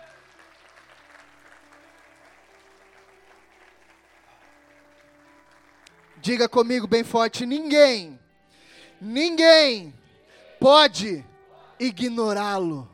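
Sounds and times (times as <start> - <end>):
audience applause: 0.0 - 6.2
speech: 6.2 - 8.2, 9.0 - 10.0, 10.6 - 12.9.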